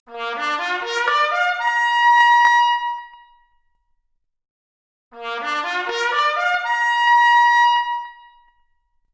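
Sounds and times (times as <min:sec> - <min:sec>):
trumpet arpeggio: 0:00.1 - 0:02.0, 0:05.2 - 0:08.1.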